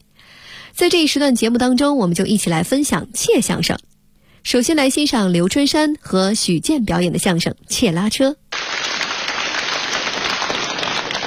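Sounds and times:
speech: 0:00.8 - 0:08.4
audience applause at a crosstalk comedy performance: 0:08.5 - 0:11.2.

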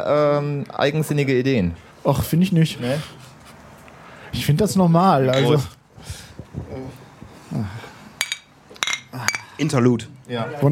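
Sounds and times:
speech: 0:00.0 - 0:03.3, 0:04.3 - 0:07.8, 0:09.6 - 0:10.7
glasses clinking in a toast: 0:05.3 - 0:05.6, 0:08.2 - 0:09.6.

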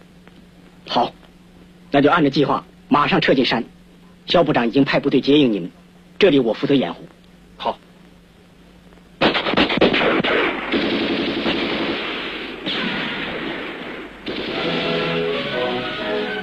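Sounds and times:
speech: 0:00.9 - 0:01.2, 0:01.9 - 0:07.8
enemy machine-gun fire in a Beijing opera battle scene: 0:09.2 - 0:16.2.

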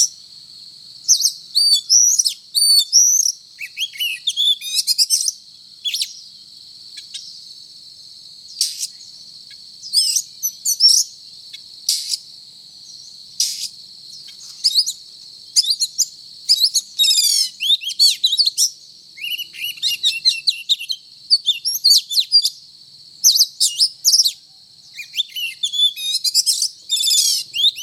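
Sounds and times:
Oriental magpie-robin whistling song: 0:01.1 - 0:06.3, 0:08.5 - 0:09.1, 0:09.8 - 0:11.2, 0:11.9 - 0:12.2, 0:12.9 - 0:15.0, 0:15.6 - 0:22.6, 0:23.2 - 0:27.8.

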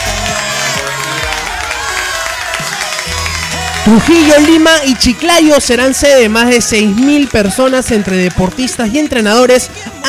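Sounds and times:
audience applause: 0:00.0 - 0:10.0
speech: 0:03.9 - 0:10.0.

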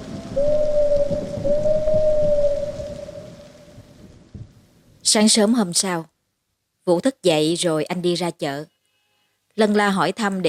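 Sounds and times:
owl hooting: 0:00.0 - 0:03.9
thunder rumbling: 0:00.0 - 0:04.7
pouring rain: 0:00.0 - 0:06.7
speech: 0:00.4 - 0:00.6, 0:05.1 - 0:06.1, 0:06.9 - 0:08.7, 0:09.6 - 0:10.4.

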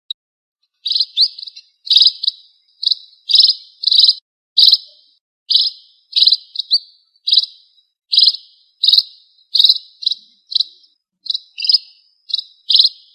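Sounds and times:
red-throated parrotfinch Erythrura psittacea giving high buzzy chirps: 0:00.8 - 0:13.1.

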